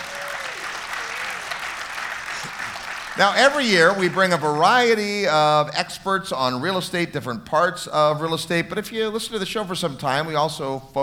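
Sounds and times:
crowd applauding: 0:00.0 - 0:05.3
speech: 0:03.2 - 0:11.0.

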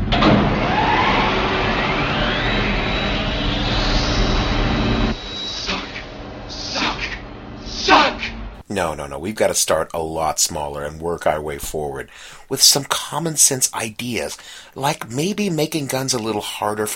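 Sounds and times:
vacuum cleaner suction roar and motor whine: 0:00.1 - 0:06.9
short hissing bursts: 0:05.5 - 0:08.0
speech: 0:08.8 - 0:16.9.

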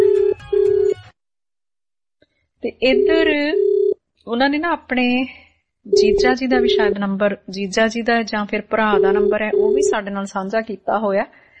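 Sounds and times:
outgoing telephone call ringback tone: 0:00.0 - 0:01.0, 0:02.8 - 0:04.0, 0:05.9 - 0:07.0, 0:08.9 - 0:10.0
speech: 0:02.6 - 0:11.4.

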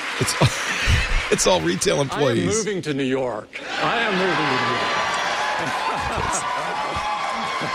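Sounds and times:
audience cheering and applauding at product event: 0:00.0 - 0:02.5, 0:03.8 - 0:07.7
laughter: 0:00.0 - 0:02.7, 0:03.6 - 0:07.7
speech: 0:00.2 - 0:05.0, 0:05.6 - 0:07.7.

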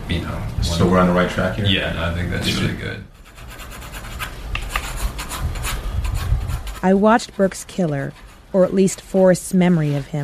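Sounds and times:
speech: 0:00.1 - 0:03.2, 0:06.8 - 0:10.2
pencil strokes sketching on paper: 0:03.1 - 0:09.3.

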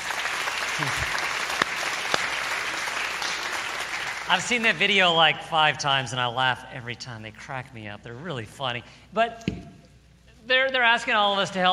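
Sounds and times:
crowd applauding: 0:00.0 - 0:04.9
speech: 0:00.8 - 0:01.2, 0:04.3 - 0:09.7, 0:10.5 - 0:11.7.

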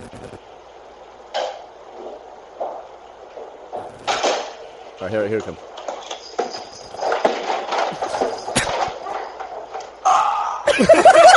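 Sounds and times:
person falling up the stairs: 0:01.4 - 0:04.6, 0:05.8 - 0:10.2
speech: 0:05.0 - 0:05.8
laughter: 0:10.6 - 0:11.3.

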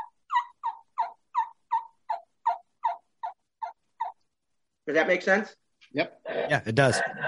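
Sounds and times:
turkey call kee-kee whistle blended into a yelp: 0:00.0 - 0:04.2
speech: 0:04.9 - 0:07.2.

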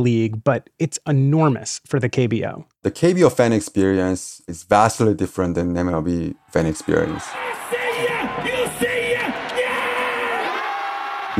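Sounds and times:
speech: 0:00.0 - 0:07.7
baseball crowd cheering: 0:06.3 - 0:11.3.

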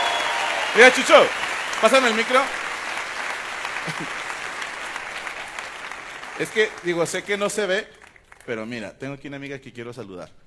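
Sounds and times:
applause: 0:00.0 - 0:08.6
speech: 0:00.8 - 0:02.6, 0:03.9 - 0:04.2, 0:06.4 - 0:10.4.

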